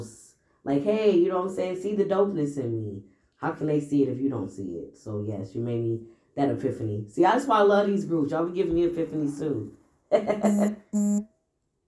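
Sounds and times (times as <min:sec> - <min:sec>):
speech: 0:00.0 - 0:11.3
phone notification alert tones: 0:10.4 - 0:11.2.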